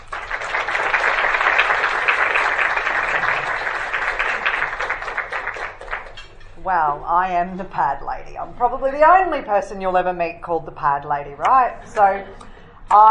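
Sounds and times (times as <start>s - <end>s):
audience applauding a speaker at a charity campaign event: 0.0s - 6.4s
speech: 6.7s - 13.0s.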